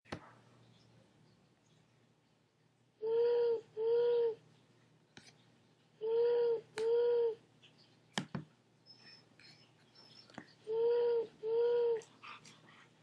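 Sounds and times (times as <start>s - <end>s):
owl hooting: 3.0s - 4.4s, 6.0s - 7.4s, 10.1s - 12.0s.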